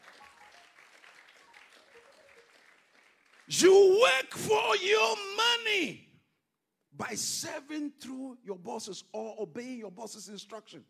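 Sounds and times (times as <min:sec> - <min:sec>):
audience applause: 0:00.0 - 0:03.6
speech: 0:03.5 - 0:06.0, 0:07.0 - 0:10.8.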